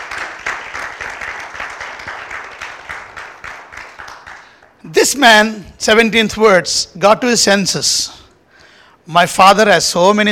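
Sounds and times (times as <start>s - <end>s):
audience clapping: 0.0s - 4.8s
speech: 5.0s - 8.2s, 9.1s - 10.3s.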